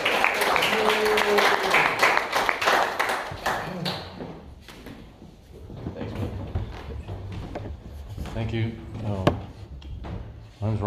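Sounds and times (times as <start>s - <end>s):
audience applause: 0.0s - 4.3s
speech: 8.5s - 9.4s, 10.6s - 10.8s.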